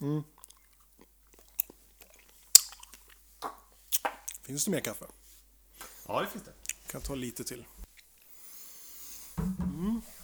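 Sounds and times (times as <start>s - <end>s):
person biting and chewing a strawberry: 0.0s - 4.5s, 6.6s - 8.3s
speech: 4.5s - 5.2s, 6.1s - 7.8s.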